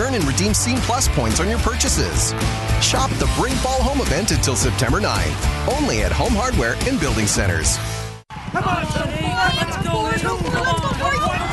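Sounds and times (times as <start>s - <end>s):
speech: 0.2s - 9.1s
harness racing horses galloping: 8.3s - 11.5s.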